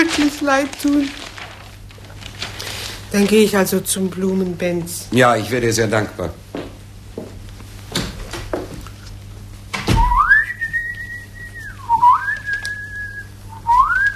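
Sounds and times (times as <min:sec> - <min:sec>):
speech: 0:00.2 - 0:01.2, 0:03.1 - 0:06.7
man whistling an opera melody: 0:10.0 - 0:14.1.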